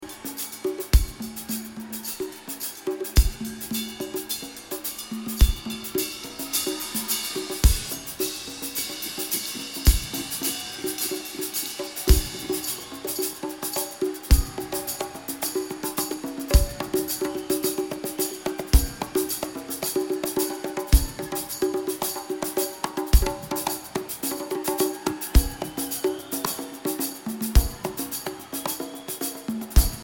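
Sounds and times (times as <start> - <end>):
drums: 0.0 - 30.0.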